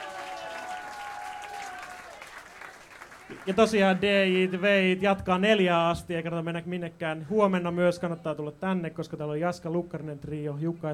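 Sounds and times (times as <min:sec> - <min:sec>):
audience applause: 0:00.0 - 0:04.7
speech: 0:03.3 - 0:10.9.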